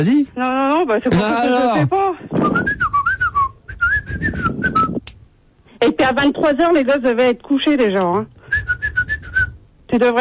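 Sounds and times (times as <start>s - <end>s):
speech: 0.0s - 2.9s, 5.8s - 8.4s, 9.9s - 10.1s
person whistling: 2.4s - 5.0s, 8.5s - 9.6s.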